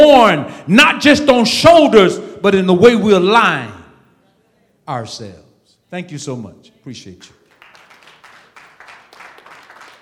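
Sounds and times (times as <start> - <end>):
speech: 0.2 - 3.8, 4.9 - 7.4
light scattered audience clapping: 7.4 - 10.0.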